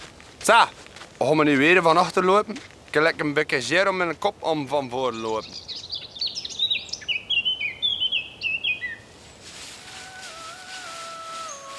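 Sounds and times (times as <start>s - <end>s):
speech: 0.5s - 5.8s
nightingale singing: 5.0s - 11.7s.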